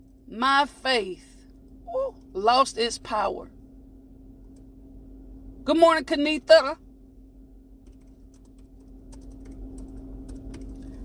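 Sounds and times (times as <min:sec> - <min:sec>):
steady low hum: 0:00.0 - 0:11.0
speech: 0:00.3 - 0:01.3, 0:02.0 - 0:03.6, 0:05.6 - 0:06.8
typing on a computer keyboard: 0:07.8 - 0:10.9.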